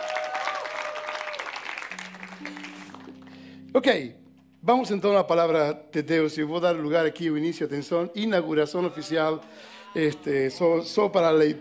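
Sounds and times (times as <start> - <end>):
audience applause for the band: 0.0 - 3.3
speech: 3.7 - 11.6.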